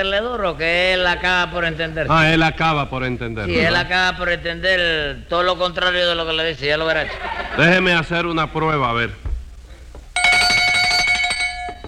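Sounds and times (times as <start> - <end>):
speech: 0.0 - 9.2
laughter: 6.9 - 8.0
small bell ringing: 10.2 - 11.8.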